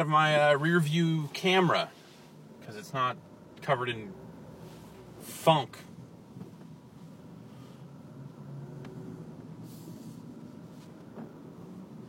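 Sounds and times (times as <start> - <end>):
speech: 0.0 - 2.0, 2.7 - 4.2, 5.2 - 5.9
road noise: 0.0 - 12.0
vehicle engine rumble: 0.0 - 12.0.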